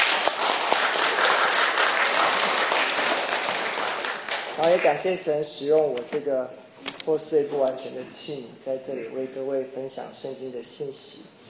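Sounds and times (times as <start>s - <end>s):
audience applause: 0.0s - 5.0s
speech: 4.6s - 11.4s.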